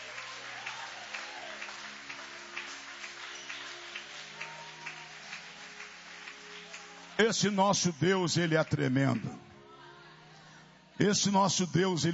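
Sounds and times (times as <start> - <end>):
audience clapping hands: 0.0 - 9.5
speech: 7.2 - 9.4, 11.0 - 12.1.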